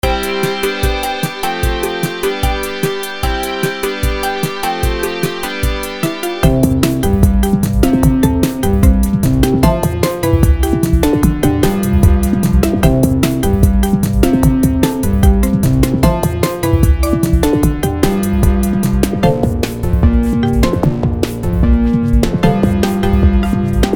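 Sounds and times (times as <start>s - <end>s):
boss instrumental music: 0.0s - 23.9s.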